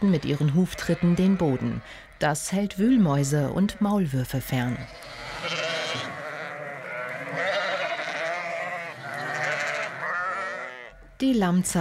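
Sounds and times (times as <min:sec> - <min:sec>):
speech: 0:00.0 - 0:06.1, 0:11.2 - 0:11.7
sheep bleating: 0:00.1 - 0:01.9, 0:04.6 - 0:11.0.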